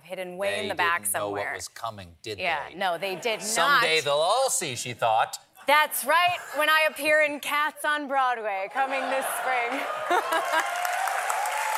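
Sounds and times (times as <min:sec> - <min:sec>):
speech: 0:00.1 - 0:10.7
laughter: 0:08.7 - 0:10.9
audience applause: 0:09.2 - 0:11.7.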